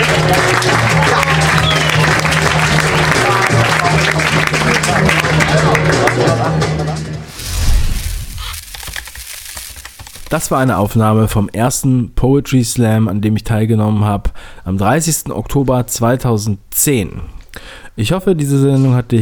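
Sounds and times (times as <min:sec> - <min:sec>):
audience clapping: 0:00.0 - 0:10.7
low rumble: 0:07.3 - 0:08.9
speech: 0:10.3 - 0:19.2.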